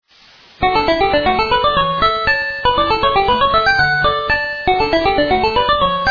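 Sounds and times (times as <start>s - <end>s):
pizzicato polka: 0.6s - 6.0s.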